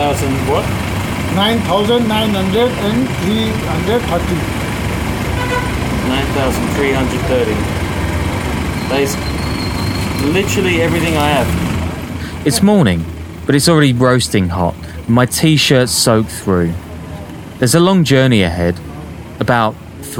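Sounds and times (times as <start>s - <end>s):
idling engines at a busy gas station in Kathmandu, Nepal: 0.0s - 20.1s
speech: 0.1s - 4.6s, 6.1s - 7.8s, 8.9s - 9.4s, 10.2s - 11.7s, 12.4s - 16.9s, 17.6s - 20.1s
vehicle horns tooting at a gas station in Kathmandu: 5.3s - 6.3s, 8.6s - 10.9s.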